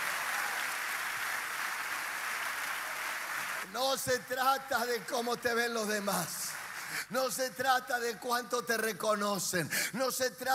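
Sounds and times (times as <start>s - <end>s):
audience applause: 0.0s - 7.1s
speech: 3.6s - 10.5s.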